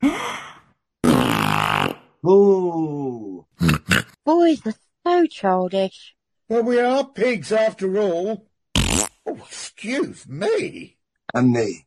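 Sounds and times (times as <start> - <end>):
fart: 1.0 - 2.2, 8.7 - 9.2
speech: 2.2 - 8.5, 9.3 - 11.8.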